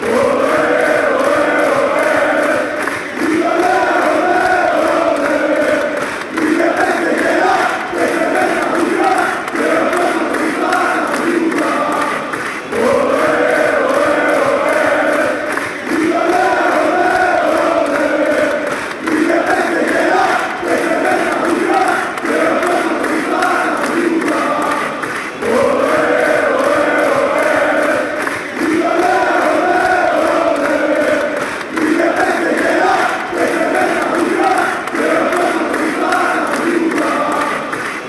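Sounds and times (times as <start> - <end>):
football fan chant: 0.0 - 38.0.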